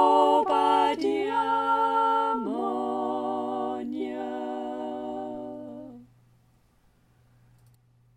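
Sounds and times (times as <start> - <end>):
community choir singing a boat song: 0.0 - 6.0.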